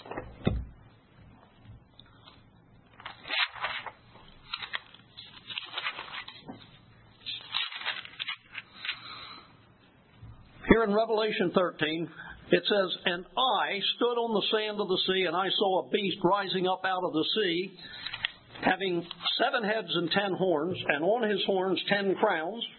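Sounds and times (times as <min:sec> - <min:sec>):
thin Bible pages being turned: 0:02.2 - 0:09.1
speech: 0:10.8 - 0:18.0, 0:18.6 - 0:22.7.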